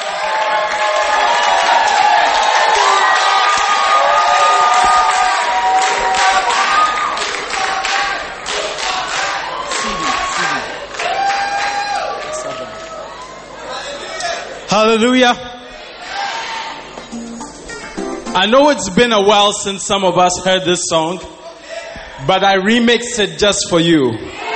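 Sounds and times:
people whooping and shouting: 0.0 - 8.2, 8.8 - 14.2
concert audience cheering and clapping to welcome a gospel duo: 0.0 - 13.6
speech: 14.8 - 15.5, 18.4 - 21.4, 22.2 - 24.4.

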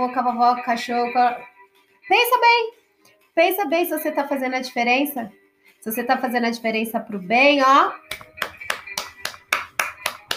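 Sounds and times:
speech: 0.0 - 1.5, 2.1 - 2.8, 3.4 - 8.2
hands clapping a steady beat: 8.0 - 10.3.

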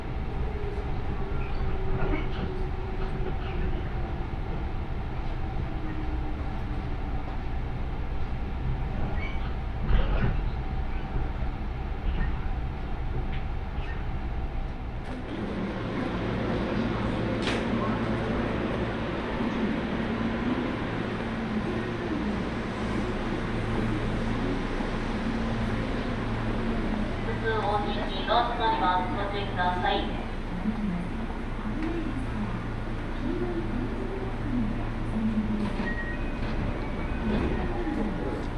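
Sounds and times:
JR Osaka Loop Line train running: 0.0 - 38.5
voice-like announcement: 27.2 - 31.1.

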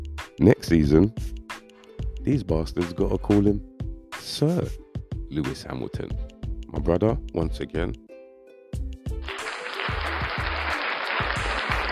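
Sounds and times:
speech: 0.4 - 1.4, 2.3 - 8.0
round of applause: 9.2 - 11.9.

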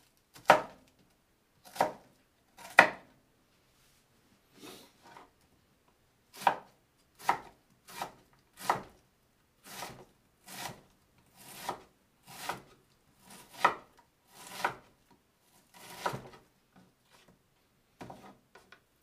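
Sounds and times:
knife chopping on a board: 1.7 - 2.0, 2.6 - 3.0, 6.4 - 8.9, 11.5 - 12.7, 13.5 - 13.9, 14.5 - 14.8, 15.8 - 16.4.

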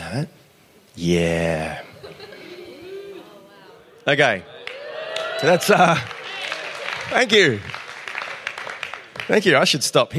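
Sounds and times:
speech: 0.1 - 0.4, 1.0 - 1.9, 4.0 - 4.5, 5.4 - 6.2, 7.0 - 7.8, 9.3 - 10.1
laughter: 1.9 - 3.9
audience clapping during a live talk: 4.6 - 10.0.

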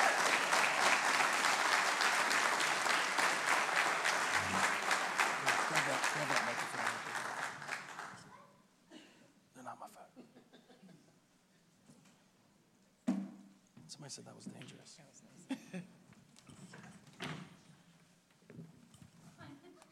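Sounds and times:
audience applause in a church welcoming guests to the stage: 0.0 - 8.2.

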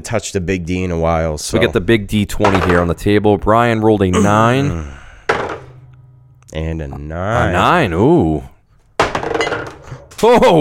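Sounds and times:
speech: 0.0 - 5.0, 6.5 - 8.5, 10.2 - 10.5
knife knocked over on table: 5.3 - 5.8, 9.0 - 10.0.

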